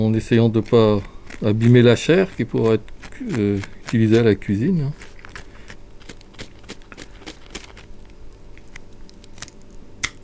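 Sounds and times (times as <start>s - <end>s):
speech: 0.0s - 5.1s
scalpel cutting the base of a fish's fins during skinning: 0.0s - 10.2s.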